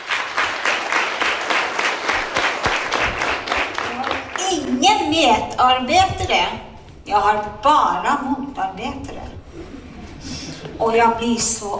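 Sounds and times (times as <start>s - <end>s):
audience applause at a revue: 0.0s - 4.8s
speech: 4.8s - 9.1s, 10.8s - 11.7s.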